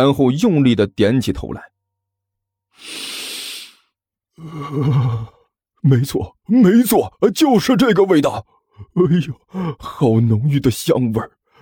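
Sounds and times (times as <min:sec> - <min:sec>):
speech: 0:00.0 - 0:01.7, 0:04.4 - 0:11.4
performer voicing a dog-like character sniffing a steamed bun: 0:02.8 - 0:03.9
wavering voiced exhale: 0:02.8 - 0:03.9.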